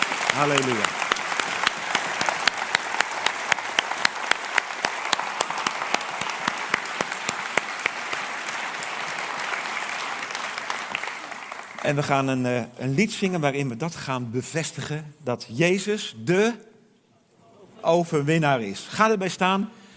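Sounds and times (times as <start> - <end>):
audience applause: 0.0 - 12.3
speech: 0.4 - 1.0, 11.9 - 16.7, 17.8 - 19.8.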